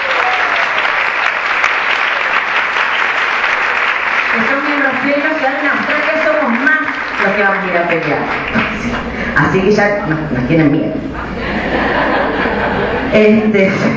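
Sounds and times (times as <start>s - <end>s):
audience applause: 0.0s - 9.3s
speech: 7.2s - 11.8s, 13.1s - 13.9s
laughter: 11.1s - 13.4s.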